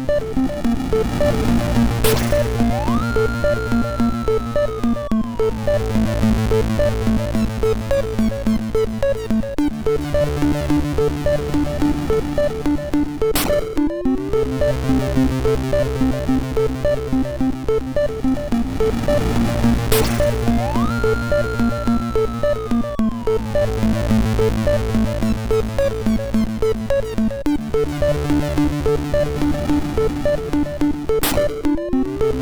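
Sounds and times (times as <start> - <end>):
MOS6581R3 SID sound chip: 0.0 - 32.4.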